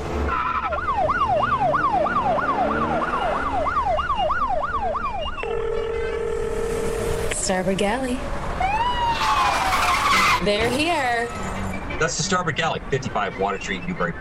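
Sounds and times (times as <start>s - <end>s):
low rumbling road noise: 0.0s - 14.1s
police car siren: 0.2s - 7.5s, 8.5s - 10.4s
speech: 7.5s - 8.4s, 10.4s - 14.1s.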